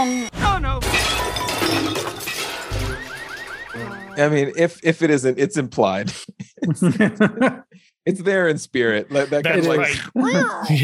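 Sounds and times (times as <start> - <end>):
speech: 0.0 - 0.4, 4.2 - 10.8
crash into a garbage can: 0.8 - 3.8
laughter: 6.1 - 7.7, 9.1 - 10.8.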